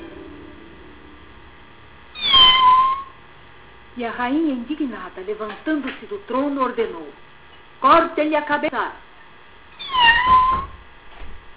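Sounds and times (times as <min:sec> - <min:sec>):
small female kitten meowing: 0:02.2 - 0:03.1, 0:09.8 - 0:10.8
speech: 0:04.0 - 0:09.1.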